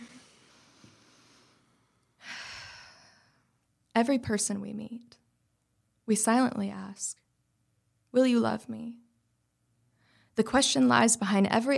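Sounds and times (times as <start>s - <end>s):
deep breath before reading a poem aloud: 0.0s - 3.5s, 9.9s - 10.3s
speech: 4.0s - 5.2s, 6.1s - 7.2s, 8.1s - 9.0s, 10.4s - 11.7s.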